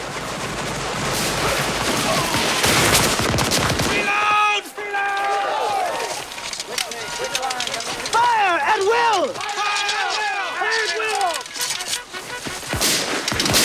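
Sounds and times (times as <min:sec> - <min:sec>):
volleys of rifle fire between two armies: 0:00.0 - 0:13.6
shouting voices: 0:03.9 - 0:12.2.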